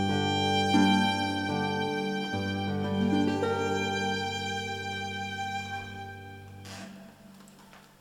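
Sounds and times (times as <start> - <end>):
harp: 0.0 - 7.6
violin: 0.0 - 7.8.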